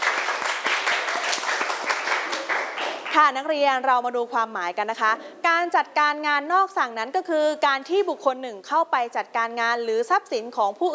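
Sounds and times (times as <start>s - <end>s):
students applauding themselves: 0.0s - 3.2s
speech: 3.2s - 10.9s.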